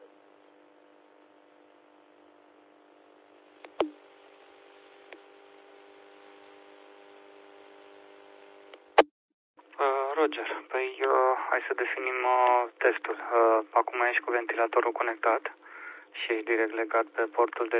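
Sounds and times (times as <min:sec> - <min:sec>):
radio carrier signal buzzing hum: 0:09.8 - 0:17.7
speech: 0:10.2 - 0:17.7.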